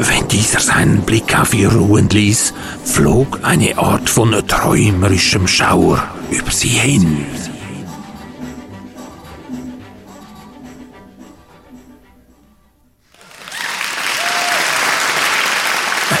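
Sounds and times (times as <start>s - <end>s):
speech: 0.0s - 7.5s
audience applause: 13.1s - 16.1s.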